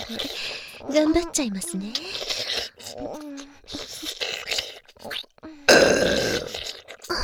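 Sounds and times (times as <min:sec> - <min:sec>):
speech: 0:00.1 - 0:02.3
burping: 0:05.1 - 0:07.1.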